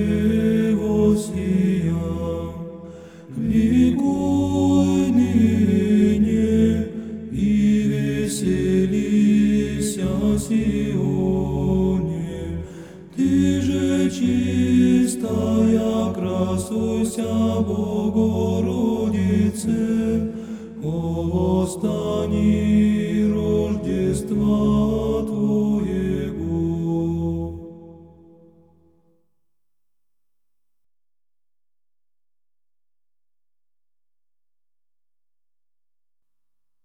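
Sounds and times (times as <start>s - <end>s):
choir: 0.0s - 28.7s.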